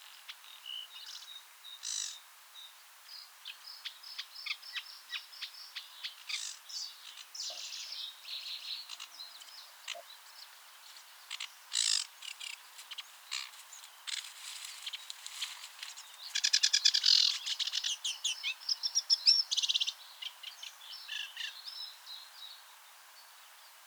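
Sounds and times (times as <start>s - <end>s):
Acrocephalus schoenobaenus in the Seine estuary: 3.7s - 22.6s.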